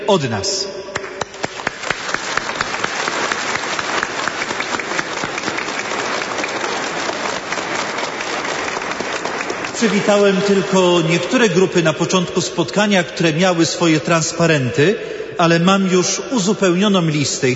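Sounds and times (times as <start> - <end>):
speech: 0.1 - 0.8, 9.8 - 17.5
children applauding: 1.0 - 10.7.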